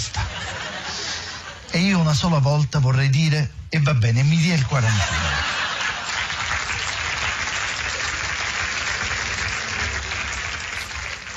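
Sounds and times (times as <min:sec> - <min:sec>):
laughter: 0:00.0 - 0:01.8, 0:04.6 - 0:08.3
speech: 0:01.7 - 0:05.4
audience applause: 0:04.8 - 0:11.3.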